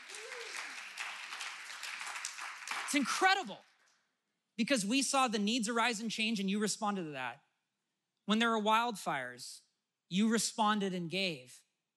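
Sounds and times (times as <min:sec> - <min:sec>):
audience applause: 0:00.0 - 0:03.4
speech: 0:02.9 - 0:03.7, 0:04.6 - 0:07.5, 0:08.3 - 0:11.6.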